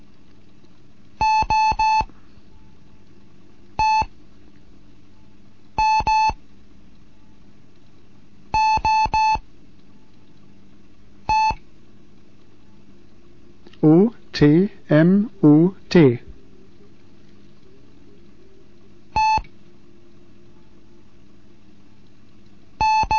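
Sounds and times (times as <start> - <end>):
faint low hum: 0.0 - 23.1
Morse code letter group beeps: 1.2 - 2.1, 3.8 - 4.1, 5.8 - 6.4, 8.6 - 9.4, 11.3 - 11.6, 19.2 - 19.5, 22.8 - 23.1
speech: 13.8 - 16.2.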